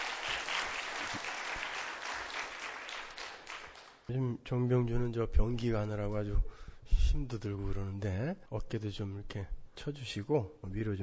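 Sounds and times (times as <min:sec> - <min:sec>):
audience applause: 0:00.0 - 0:04.0
speech: 0:04.1 - 0:11.0.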